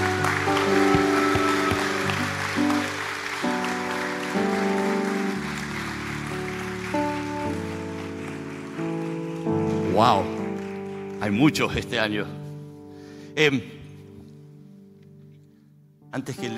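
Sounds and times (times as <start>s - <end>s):
audience applause for graduates: 0.0s - 11.9s
speech: 11.3s - 12.4s, 13.4s - 13.7s, 16.2s - 16.5s.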